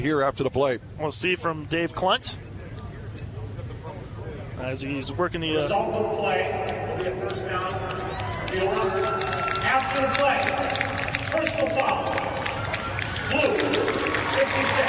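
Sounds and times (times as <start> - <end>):
speech: 0.0 - 2.6, 4.6 - 12.3, 13.3 - 14.8
stadium crowd clapping and cheering: 6.3 - 14.8.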